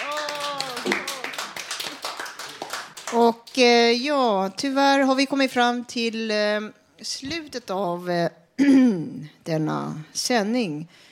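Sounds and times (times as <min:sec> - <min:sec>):
audience applause: 0:00.0 - 0:03.2
speech: 0:03.1 - 0:11.0.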